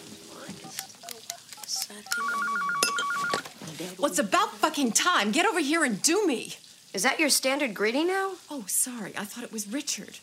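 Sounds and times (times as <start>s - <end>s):
telephone keypad beeps: 0.6s - 3.4s
speech: 3.8s - 10.2s.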